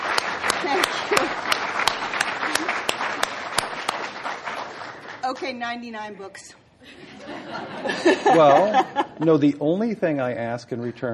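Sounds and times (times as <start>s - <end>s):
audience applause: 0.0s - 5.5s
laughter: 0.5s - 1.6s, 6.8s - 9.6s
speech: 5.4s - 11.1s.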